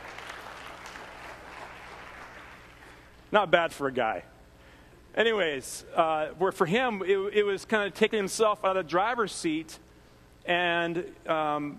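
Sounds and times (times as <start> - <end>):
applause: 0.0 - 3.3
speech: 3.3 - 4.3, 5.2 - 9.8, 10.4 - 11.7.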